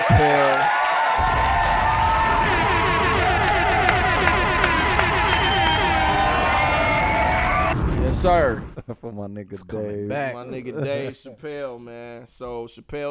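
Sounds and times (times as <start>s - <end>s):
scattered claps: 0.0s - 7.5s
crowd cheering: 0.0s - 7.8s
high whoops and shouts: 0.0s - 7.8s
speech: 8.2s - 13.0s.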